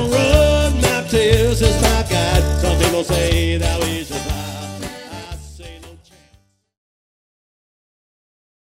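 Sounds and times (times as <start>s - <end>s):
Cajun band playing: 0.0s - 6.3s.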